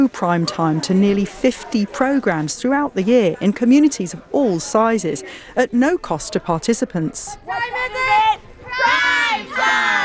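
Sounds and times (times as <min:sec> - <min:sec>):
speech: 0:00.0 - 0:10.0
families and children cheering in a park: 0:07.5 - 0:10.0.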